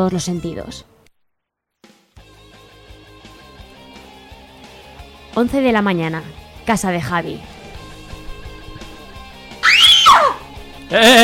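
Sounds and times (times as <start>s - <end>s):
speech: 0.0s - 0.9s, 5.4s - 7.5s, 10.9s - 11.2s
person screaming: 9.6s - 11.2s.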